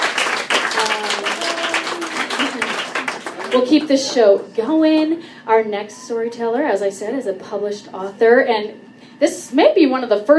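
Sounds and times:
crowd applauding: 0:00.0 - 0:04.4
speech: 0:03.5 - 0:10.3.

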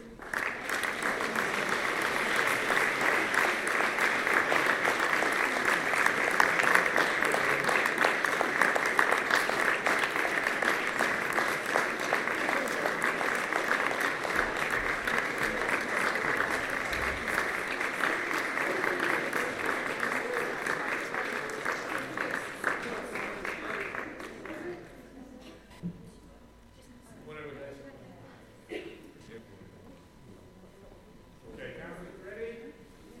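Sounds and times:
crowd applauding: 0:00.0 - 0:25.0.

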